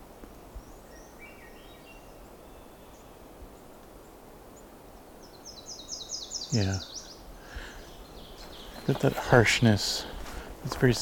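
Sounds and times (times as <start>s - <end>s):
Nashville Warbler call notes: 0.0s - 11.0s
steady hiss of noise: 0.0s - 11.0s
speech: 6.5s - 6.9s, 8.9s - 11.0s.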